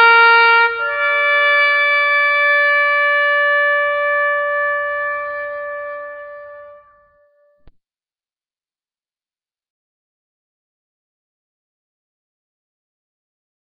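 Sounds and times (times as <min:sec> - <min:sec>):
bugle call: 0:00.0 - 0:07.7.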